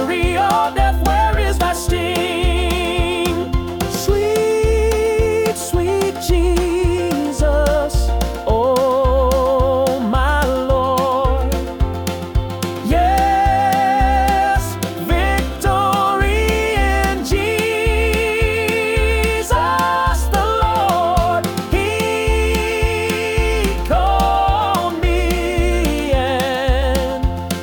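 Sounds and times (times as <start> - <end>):
man singing an upbeat hymn: 0.0 - 11.9, 12.6 - 27.6
piano: 0.0 - 27.6.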